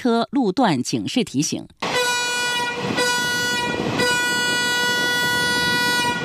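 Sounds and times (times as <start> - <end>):
speech: 0.0 - 1.8
train horn blasts: 1.8 - 6.2.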